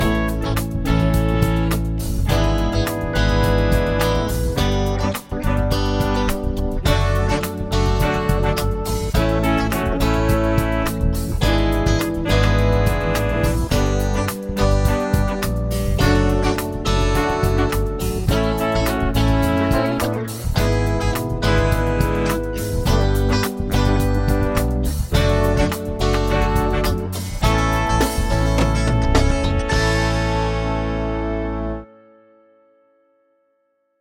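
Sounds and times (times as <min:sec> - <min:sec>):
chord progression with mixture: 0:00.0 - 0:33.2.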